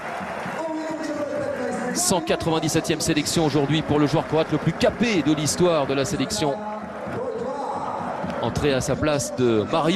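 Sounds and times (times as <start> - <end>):
stadium crowd applauding substituted player: 0.0 - 9.9
speech: 2.0 - 7.2, 8.5 - 9.9.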